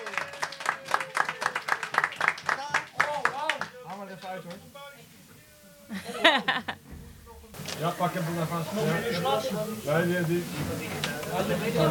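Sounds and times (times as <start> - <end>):
applause: 0.0 - 4.7
laughter: 5.9 - 6.9
speech: 7.8 - 11.8.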